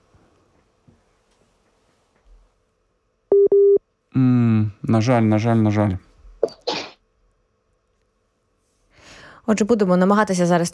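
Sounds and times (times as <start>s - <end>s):
telephone busy tones on the line: 3.3s - 3.8s
speech: 4.2s - 6.1s, 9.5s - 10.7s.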